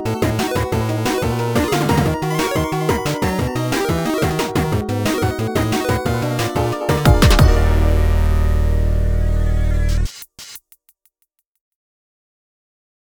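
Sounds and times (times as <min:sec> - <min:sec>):
instrumental music: 0:00.0 - 0:10.3.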